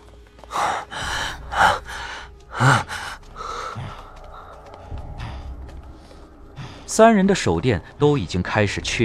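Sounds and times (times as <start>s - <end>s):
heavy panting breaths of three people in a dark mountain passage: 0.4s - 7.0s
speech: 7.0s - 9.0s.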